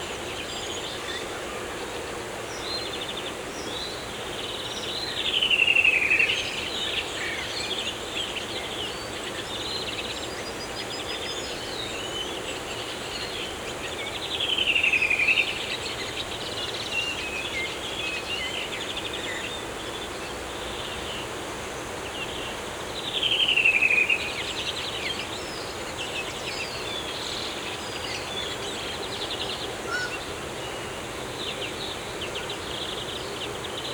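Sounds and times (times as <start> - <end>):
forest birds: 0.0 - 33.9.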